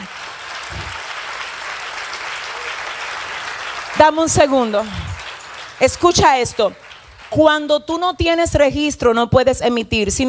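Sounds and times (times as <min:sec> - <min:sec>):
loud audience applause: 0:00.0 - 0:07.7
speech: 0:04.0 - 0:05.1, 0:05.8 - 0:10.2.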